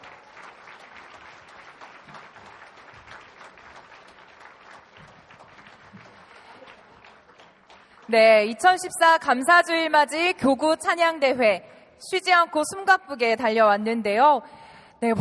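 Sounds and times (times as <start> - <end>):
audience applause: 0.0 - 8.1
speech: 8.1 - 15.1.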